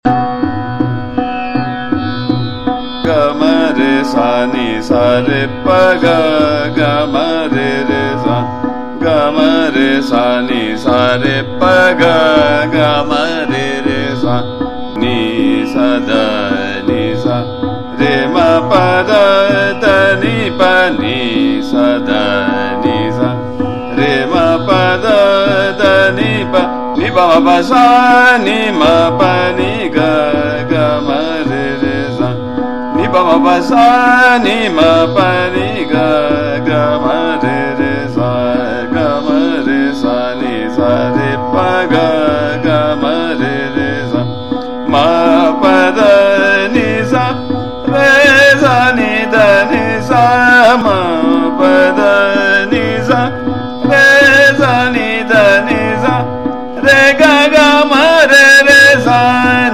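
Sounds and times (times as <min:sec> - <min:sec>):
sargam syllables sung in trital: 0:00.0 - 0:59.7.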